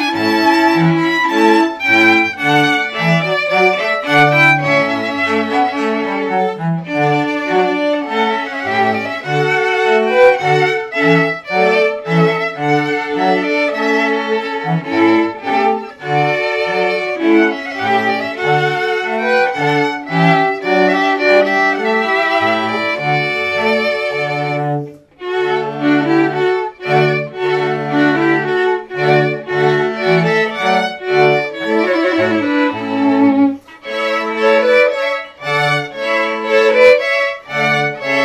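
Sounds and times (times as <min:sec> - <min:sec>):
string quartet playing: 0:00.0 - 0:38.2.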